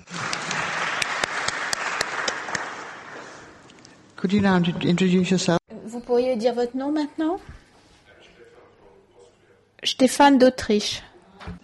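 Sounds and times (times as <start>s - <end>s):
audience applause: 0.0s - 3.7s
speech: 4.2s - 7.5s, 10.0s - 11.6s.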